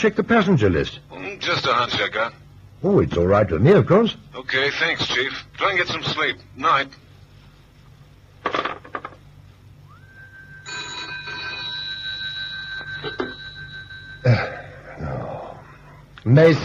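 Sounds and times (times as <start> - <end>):
speech: 0.0 - 7.0, 16.2 - 16.6
telephone bell ringing: 10.5 - 14.8.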